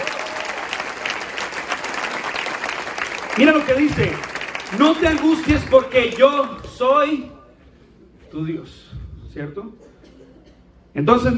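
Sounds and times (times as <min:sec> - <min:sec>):
audience applause: 0:00.0 - 0:06.6
speech: 0:03.4 - 0:07.3, 0:08.3 - 0:09.9, 0:10.9 - 0:11.3.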